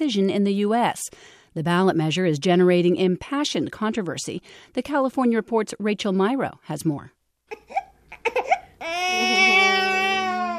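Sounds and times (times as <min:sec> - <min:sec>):
speech: 0:00.0 - 0:07.9
eight-week-old baby boy whimpering after his nap: 0:07.5 - 0:10.5.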